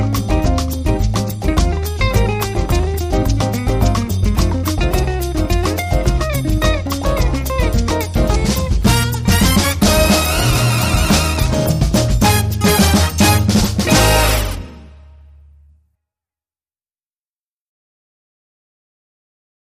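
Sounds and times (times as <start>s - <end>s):
Latin lounge music: 0.0s - 15.1s.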